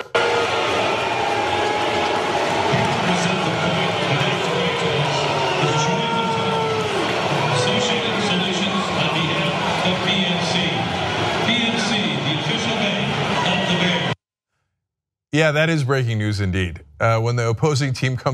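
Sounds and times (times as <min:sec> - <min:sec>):
large stadium crowd booing: 0:00.0 - 0:14.2
speech: 0:15.4 - 0:18.3.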